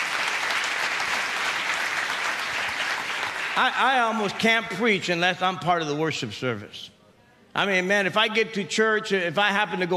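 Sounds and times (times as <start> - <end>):
crowd clapping: 0.0 - 4.2
speech: 3.6 - 7.0, 7.6 - 9.9.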